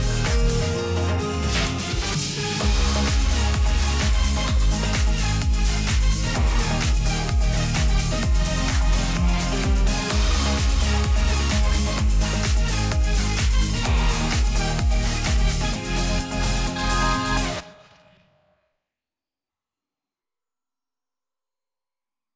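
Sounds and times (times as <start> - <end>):
off vocal instrumental music: 0.0 - 17.6.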